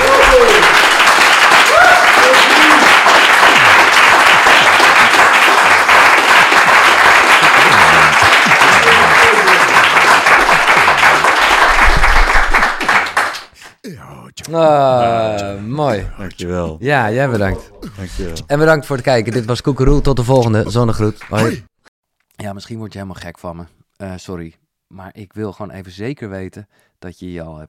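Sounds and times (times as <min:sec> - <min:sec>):
audience applause: 0:00.0 - 0:13.6
speech: 0:14.5 - 0:21.7, 0:22.4 - 0:27.6.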